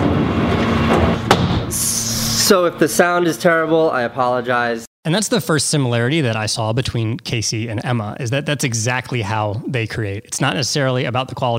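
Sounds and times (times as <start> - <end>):
garbage truck outside: 0.0 - 2.4
speech: 2.5 - 11.5.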